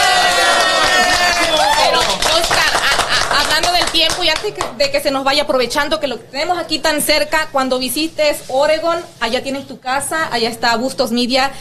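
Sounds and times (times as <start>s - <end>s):
cheering voices: 0.0s - 3.3s
sustained audience applause: 0.0s - 4.2s
speech: 3.4s - 11.5s.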